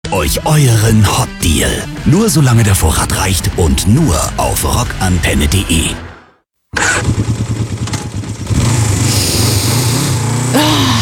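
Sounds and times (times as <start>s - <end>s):
speech: 0.1s - 6.1s
motorcycle engine starting and running: 6.7s - 11.0s.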